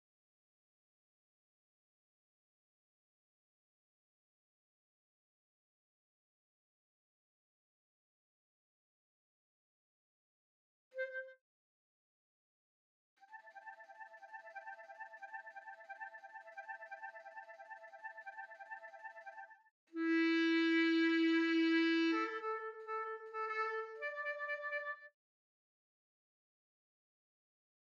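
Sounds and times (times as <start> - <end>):
clarinet: 11.0 - 11.4, 13.2 - 25.2.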